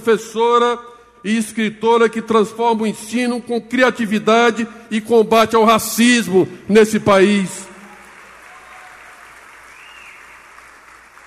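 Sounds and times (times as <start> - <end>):
speech: 0.0 - 7.7
audience applause: 7.8 - 11.2.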